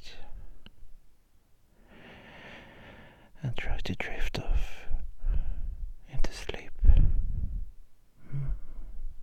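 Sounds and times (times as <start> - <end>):
slow breathing close to the microphone: 1.7 - 3.4, 5.2 - 5.9, 6.8 - 9.2
speech: 3.8 - 4.8.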